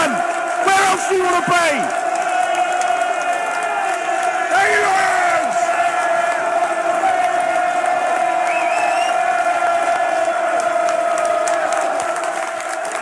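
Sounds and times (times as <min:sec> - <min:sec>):
big football stadium crowd roaring: 0:00.0 - 0:13.0
scattered whistles: 0:08.4 - 0:09.3.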